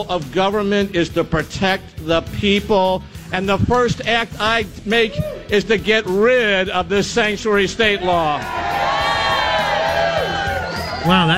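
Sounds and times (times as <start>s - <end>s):
speech: 0.0s - 8.8s, 11.0s - 11.3s
unenthusiastic crowd cheering: 8.0s - 11.3s.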